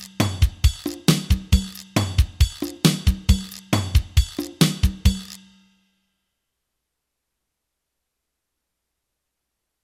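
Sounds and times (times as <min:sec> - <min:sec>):
fast Latin music: 0:00.0 - 0:05.6.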